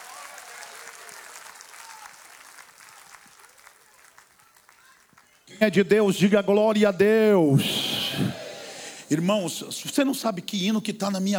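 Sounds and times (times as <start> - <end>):
audience applauding: 0.0 - 5.9
speech: 5.5 - 8.4, 9.1 - 11.3.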